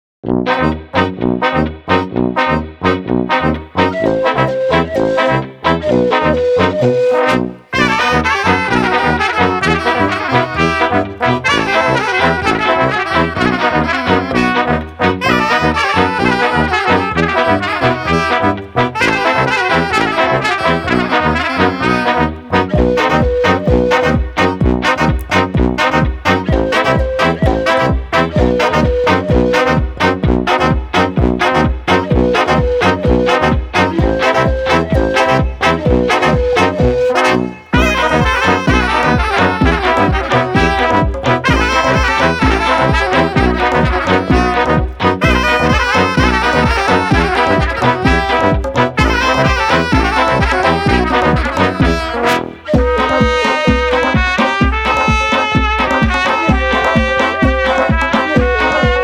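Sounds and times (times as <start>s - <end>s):
Balkan brass band playing: 0.3s - 59.0s.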